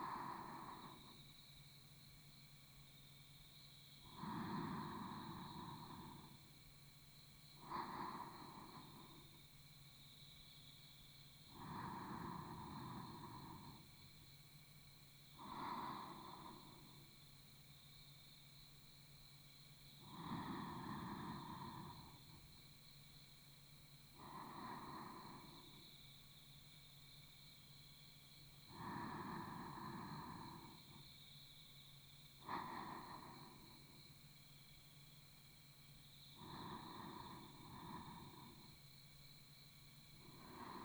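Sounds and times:
sleep breathing on the right side: 0.0s - 1.2s, 4.1s - 6.4s, 7.6s - 9.4s, 11.6s - 13.9s, 15.4s - 17.0s, 20.0s - 22.4s, 24.2s - 25.8s, 28.7s - 31.0s, 32.4s - 34.0s, 36.4s - 38.8s, 40.2s - 40.8s.

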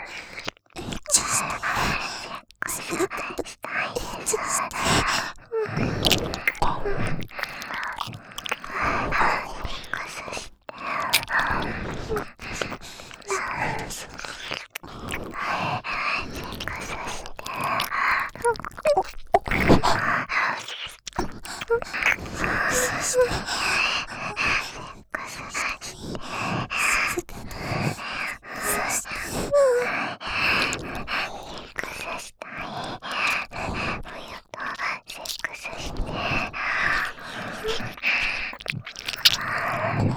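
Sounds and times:
ear licking sounds: 0.1s - 40.1s
person moaning: 22.5s - 23.3s.

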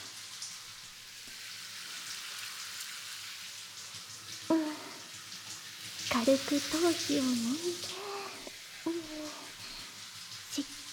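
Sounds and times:
shower water running over hair during a hair wash: 0.0s - 10.9s
speech: 6.1s - 8.0s, 8.8s - 9.4s.

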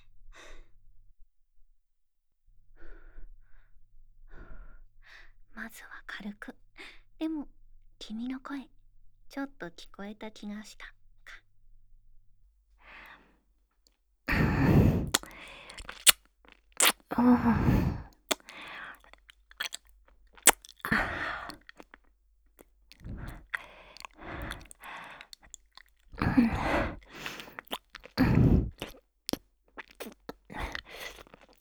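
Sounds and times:
ear licking practice sounds: 14.3s - 16.2s, 16.8s - 22.0s, 22.6s - 29.0s, 29.8s - 31.5s.

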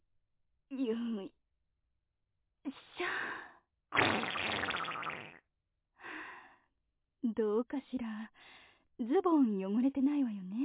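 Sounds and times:
speech: 0.7s - 1.4s, 7.2s - 10.6s
raspy fart: 4.0s - 5.4s.

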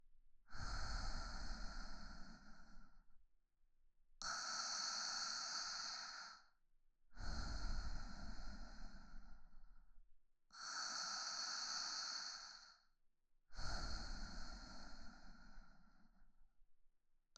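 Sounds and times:
woman breathing calmly in sleep beside her boyfriend: 0.5s - 3.1s, 4.2s - 9.7s, 10.5s - 12.9s, 13.5s - 16.3s.

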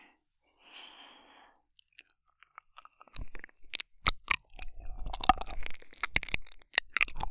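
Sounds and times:
deep ear licking sounds: 1.8s - 7.2s.

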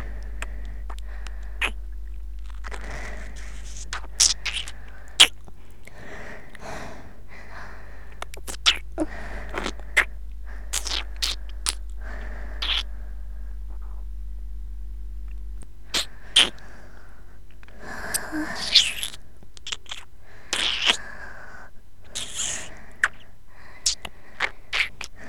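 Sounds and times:
breathing: 0.0s - 14.1s, 15.9s - 19.0s, 20.2s - 25.2s
fellatio sucking sounds: 0.0s - 17.0s.

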